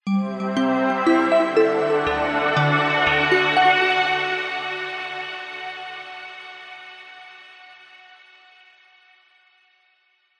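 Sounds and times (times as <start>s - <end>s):
warm positive arpeggiated multimedia musical logo ident: 0.1s - 7.2s.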